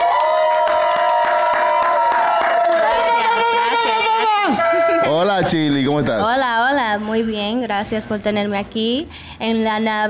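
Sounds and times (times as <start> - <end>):
scattered claps: 0.0 - 2.9
audience cheering with whoops and shouts: 0.0 - 4.6
speech: 4.5 - 10.0.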